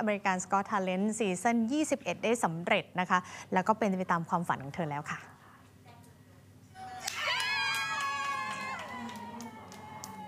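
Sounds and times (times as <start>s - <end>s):
speech: 0.0s - 5.4s
audience cheering: 6.8s - 10.2s.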